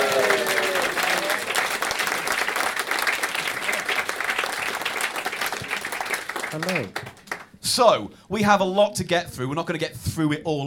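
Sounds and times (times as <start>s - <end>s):
audience applause: 0.0s - 7.5s
speech: 6.6s - 10.6s.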